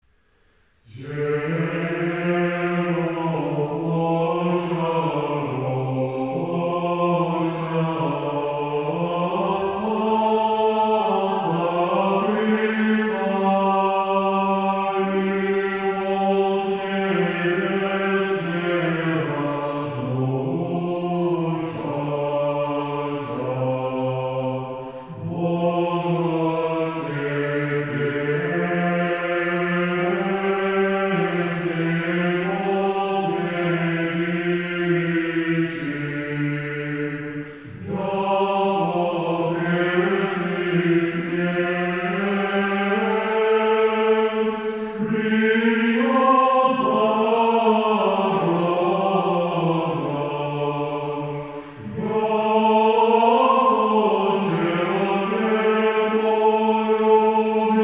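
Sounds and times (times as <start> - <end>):
Orthodox stichera chant in tone five: 0.8 - 57.8.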